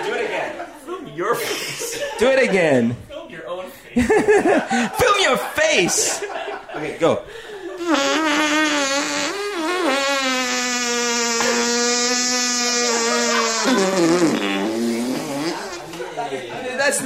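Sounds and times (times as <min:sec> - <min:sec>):
laughter: 0:00.0 - 0:02.9, 0:04.0 - 0:08.1, 0:12.8 - 0:16.8
speech: 0:01.2 - 0:01.6, 0:02.2 - 0:03.1, 0:04.0 - 0:08.3
voice imitating a fart: 0:07.8 - 0:16.0.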